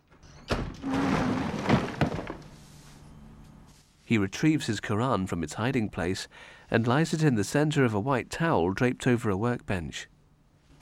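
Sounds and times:
garage door closing: 0.0s - 2.6s
speech: 4.1s - 10.1s.

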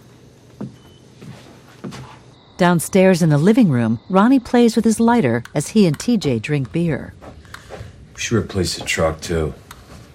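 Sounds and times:
man's footsteps stepping away in a darkened bedroom: 0.1s - 2.4s, 6.5s - 10.1s
speech: 2.6s - 7.2s, 8.2s - 9.6s
steady quiet hiss: 7.4s - 10.1s.

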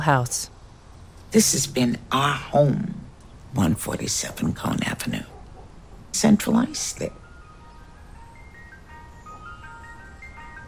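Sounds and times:
speech: 0.0s - 0.5s, 1.3s - 5.3s, 6.2s - 7.2s
ice cream truck passing an intersection: 5.1s - 10.6s.

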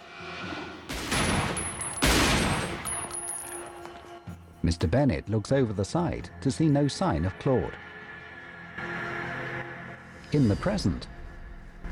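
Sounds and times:
gunshots from a dramatic scene on a bridge: 0.9s - 3.0s
speech: 4.7s - 7.8s, 10.3s - 11.2s.

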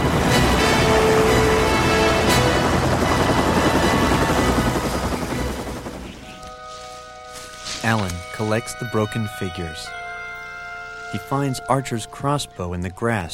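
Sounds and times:
departing helicopter rotor roar: 0.0s - 6.5s
speech: 8.4s - 10.0s, 11.1s - 13.3s.

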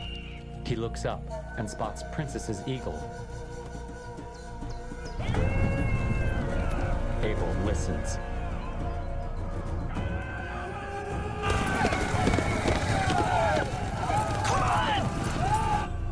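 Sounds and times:
speech: 0.7s - 3.4s, 7.2s - 8.3s
horses galloping fast over hills under a band of riders: 4.9s - 8.8s, 11.1s - 16.0s
horses whinnying: 5.0s - 7.6s, 8.2s - 16.0s.

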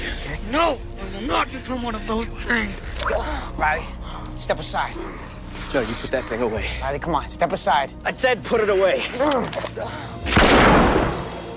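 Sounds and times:
speech: 0.5s - 10.9s
handgun gunshot: 10.3s - 11.4s.

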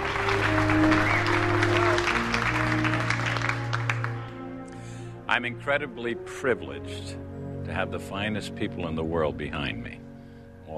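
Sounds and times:
crowd of office workers applauding: 0.0s - 4.5s
speech: 5.3s - 10.0s.

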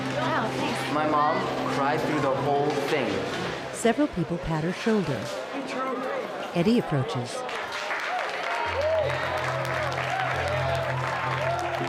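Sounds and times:
speech: 1.0s - 7.6s
students applauding: 7.2s - 11.8s.

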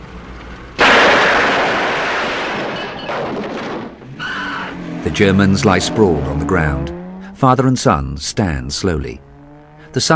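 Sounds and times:
heavy machine gun fire: 0.8s - 4.0s
speech: 5.0s - 9.3s, 9.9s - 10.1s.

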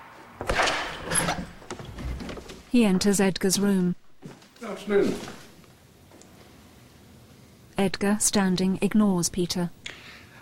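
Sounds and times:
lock clunking open: 0.4s - 2.7s
speech: 2.7s - 4.0s, 4.8s - 5.4s, 7.8s - 10.1s.

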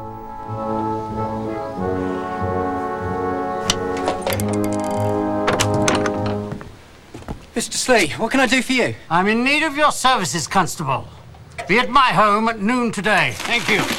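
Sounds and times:
droning musical tones: 0.0s - 6.8s
stones thrown against a front door: 3.7s - 7.5s, 13.2s - 13.9s
speech: 7.6s - 13.9s.

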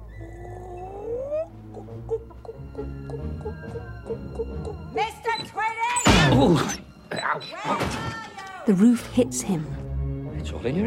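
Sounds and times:
person imitating chicken clucking: 1.7s - 4.8s
speech: 3.6s - 5.8s, 6.4s - 6.8s, 7.4s - 9.8s, 10.5s - 10.8s.

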